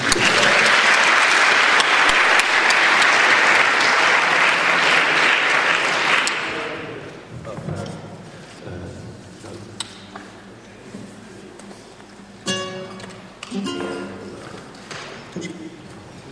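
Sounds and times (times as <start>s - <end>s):
applause: 0.0s - 7.0s.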